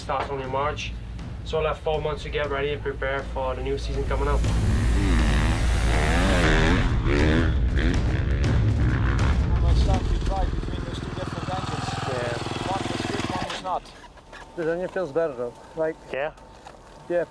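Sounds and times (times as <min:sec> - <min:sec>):
speech: 0:00.1 - 0:05.1, 0:13.7 - 0:16.5, 0:17.1 - 0:17.2
dirt bike engine revving: 0:03.7 - 0:14.2.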